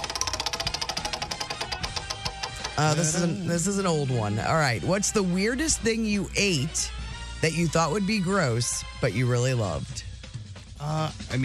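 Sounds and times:
question wheel spun during a game ticking: 0:00.0 - 0:03.3
speech: 0:02.8 - 0:10.1, 0:10.8 - 0:11.4.

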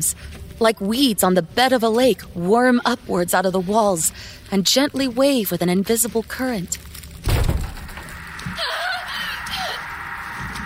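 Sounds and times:
speech: 0:00.0 - 0:06.9
heavy slam against a wooden door: 0:07.3 - 0:07.9.

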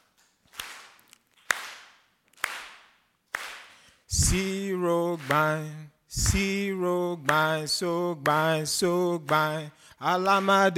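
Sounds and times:
hand claps: 0:00.0 - 0:04.4, 0:05.2 - 0:05.6, 0:07.3 - 0:07.5, 0:08.2 - 0:08.5, 0:09.3 - 0:09.6, 0:10.2 - 0:10.6
speech: 0:04.1 - 0:10.7.

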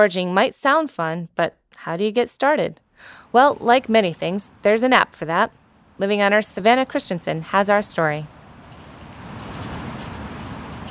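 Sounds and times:
speech: 0:00.0 - 0:08.4
busy road traffic: 0:03.0 - 0:10.8.

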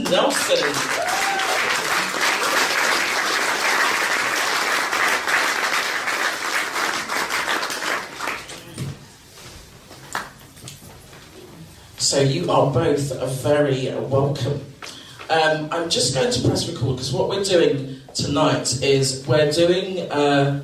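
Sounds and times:
audience applause at a London music interview event: 0:00.0 - 0:08.7
speech: 0:00.1 - 0:01.8, 0:12.1 - 0:14.7, 0:15.3 - 0:20.6.

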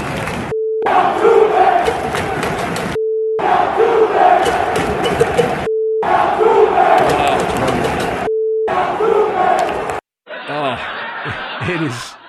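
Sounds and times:
beep tones: 0:00.5 - 0:00.9, 0:03.0 - 0:03.4, 0:05.0 - 0:06.1, 0:08.2 - 0:08.7
stadium crowd chanting: 0:00.8 - 0:10.0
laughter: 0:10.3 - 0:12.2.

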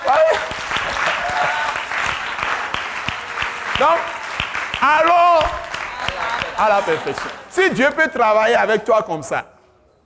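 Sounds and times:
congregation applause acclaiming God during a church sermon: 0:00.0 - 0:08.5
speech: 0:06.6 - 0:09.5.

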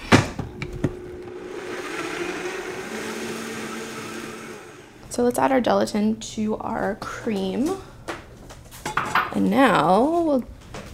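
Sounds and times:
blender blending strawberries and lemon juice: 0:00.7 - 0:05.0
speech: 0:05.2 - 0:07.9, 0:09.4 - 0:10.6.

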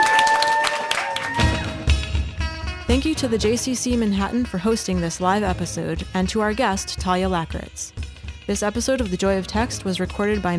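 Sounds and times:
audience applause: 0:00.0 - 0:01.8
speech: 0:02.9 - 0:10.5.

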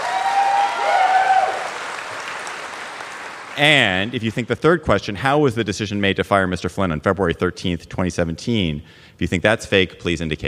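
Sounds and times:
cheers and whistles: 0:00.0 - 0:01.9
audience applause: 0:00.0 - 0:04.2
speech: 0:03.6 - 0:10.4.

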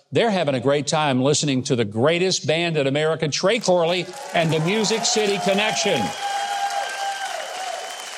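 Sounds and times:
speech: 0:00.1 - 0:06.4
indoor studio audience clapping: 0:03.6 - 0:08.1.

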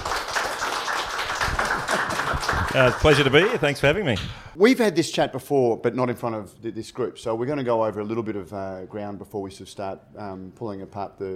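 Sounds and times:
audience applause: 0:00.0 - 0:03.8
speech: 0:02.7 - 0:11.3.

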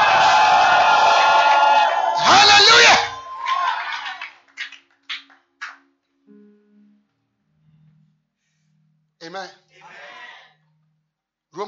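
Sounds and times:
audience shouting: 0:00.0 - 0:04.2
audience clapping: 0:01.1 - 0:05.8.

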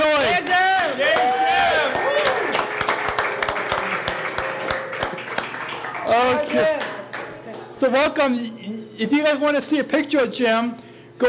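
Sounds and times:
live audience applause: 0:01.1 - 0:07.7
speech: 0:07.8 - 0:11.2.

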